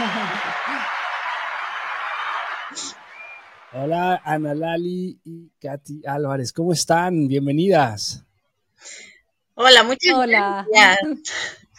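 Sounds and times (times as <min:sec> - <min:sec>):
person chuckling: 0:00.0 - 0:00.5
audience applause: 0:00.0 - 0:04.2
speech: 0:03.7 - 0:11.6.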